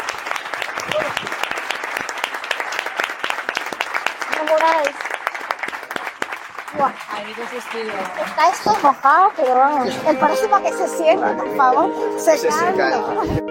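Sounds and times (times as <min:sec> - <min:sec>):
crowd applause: 0:00.0 - 0:11.0
voices and cheers: 0:00.7 - 0:01.8, 0:06.7 - 0:10.7
speech: 0:06.8 - 0:13.4.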